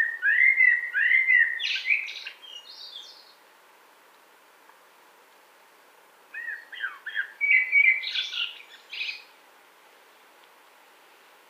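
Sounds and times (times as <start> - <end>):
Eurasian blackbird song phrases: 0.0 - 3.4, 6.3 - 9.3.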